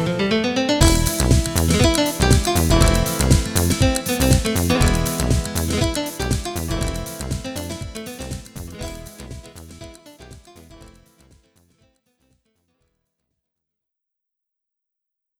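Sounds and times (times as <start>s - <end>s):
violent flamenco music: 0.0s - 11.2s.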